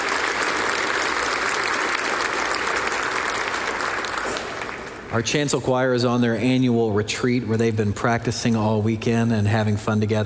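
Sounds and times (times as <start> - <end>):
audience applause: 0.0 - 5.1
speech: 5.1 - 10.2.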